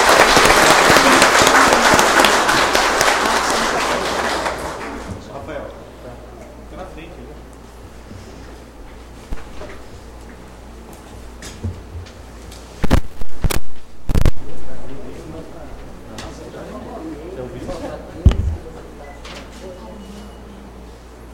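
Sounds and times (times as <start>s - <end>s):
audience applause: 0.0s - 5.2s
room murmur: 0.0s - 21.3s.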